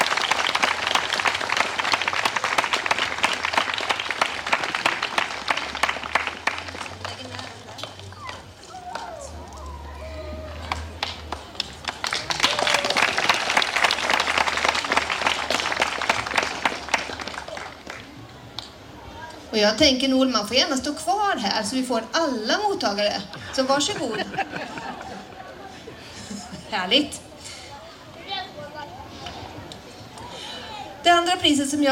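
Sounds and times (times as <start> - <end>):
audience applause: 0.0 - 9.5, 10.2 - 18.2
faint voices and low murmur: 0.0 - 31.8
speech: 19.6 - 24.3, 26.7 - 27.2, 31.4 - 31.8
laughter: 23.4 - 26.7.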